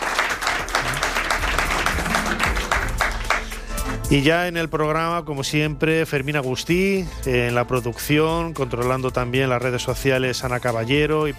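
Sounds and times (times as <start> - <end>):
studio audience applause: 0.0 - 4.0
speech: 4.1 - 11.3.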